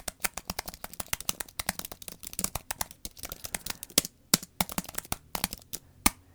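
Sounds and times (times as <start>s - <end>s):
typing on an Apple Magic Keyboard: 0.0s - 6.3s.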